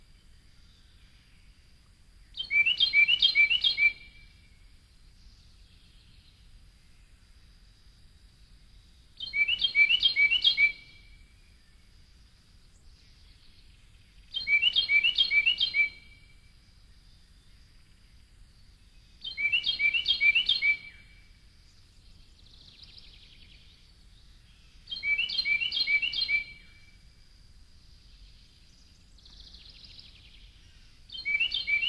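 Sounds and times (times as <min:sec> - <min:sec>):
Carolina wren at Indian Springs: 0:00.0 - 0:31.8.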